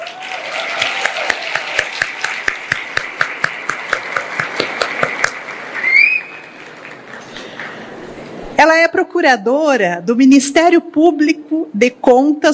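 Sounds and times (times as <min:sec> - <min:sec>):
audience applause: 0:00.0 - 0:08.1
speech: 0:09.1 - 0:12.5.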